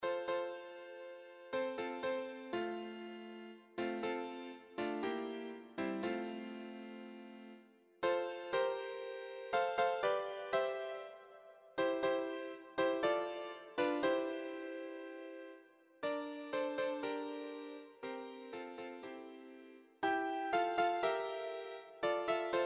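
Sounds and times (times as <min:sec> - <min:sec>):
piano: 0:00.0 - 0:22.6.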